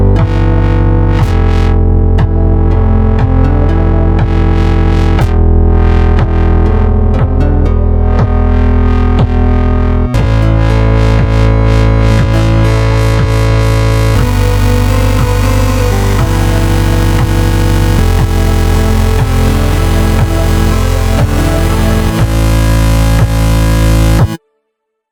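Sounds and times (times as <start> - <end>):
mini dubstep remix: 0.1 - 24.4.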